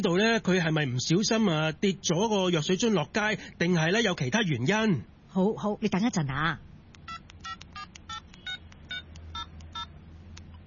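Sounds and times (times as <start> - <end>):
speech: 0.0 - 6.7
low steady hum: 0.0 - 10.6
telephone keypad tones dialing an elderly person: 7.1 - 10.0.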